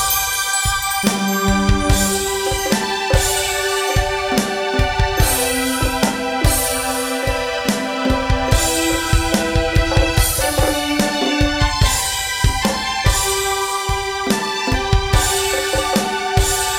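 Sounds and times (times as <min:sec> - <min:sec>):
ambient strings: 0:00.0 - 0:16.7.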